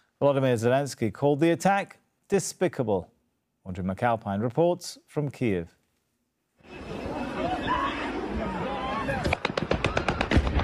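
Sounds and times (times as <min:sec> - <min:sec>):
speech: 0:00.2 - 0:05.8
drone crashing into a busy shopping mall in southern Ukraine: 0:06.6 - 0:10.6.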